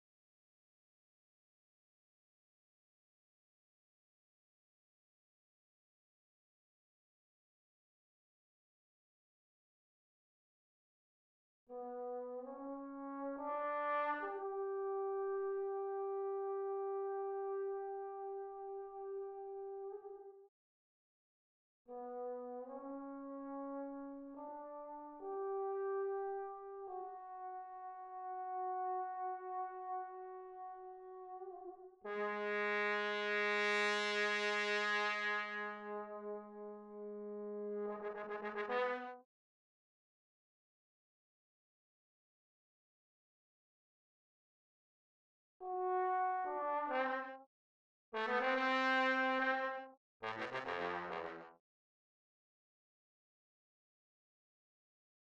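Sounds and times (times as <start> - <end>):
trombone: 11.7 - 20.2, 21.9 - 39.2, 45.6 - 47.5, 48.2 - 51.6.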